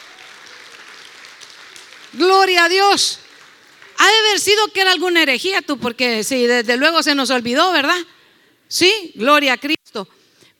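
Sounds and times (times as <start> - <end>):
audience applause: 0.0 - 4.1
speech: 2.1 - 3.2, 4.0 - 10.2.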